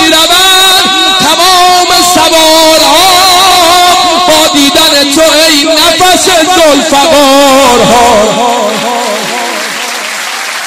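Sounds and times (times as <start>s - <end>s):
person singing: 0.0s - 10.1s
audience clapping at a devotional poetry recitation: 8.1s - 10.6s.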